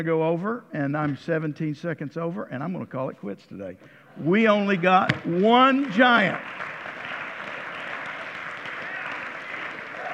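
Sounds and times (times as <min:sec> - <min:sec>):
speech: 0:00.0 - 0:06.7
audience clapping: 0:05.2 - 0:10.1.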